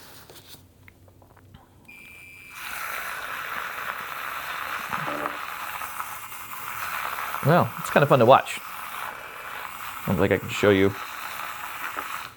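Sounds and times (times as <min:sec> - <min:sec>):
milk frother whirring: 0:01.8 - 0:12.3
speech: 0:07.4 - 0:08.7, 0:10.0 - 0:11.1.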